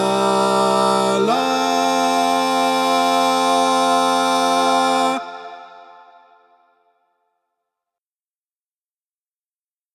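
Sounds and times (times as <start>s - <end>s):
baritone carol in mono: 0.0s - 6.7s.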